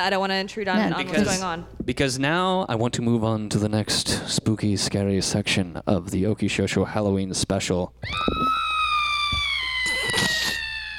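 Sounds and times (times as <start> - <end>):
speech: 0.0 - 8.6
long scream: 8.0 - 10.9.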